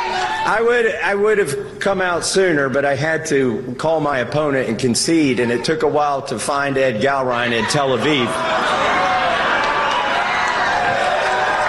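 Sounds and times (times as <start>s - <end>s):
large crowd cheering and applauding: 0.0s - 0.6s, 8.0s - 11.6s
speech: 0.5s - 9.4s.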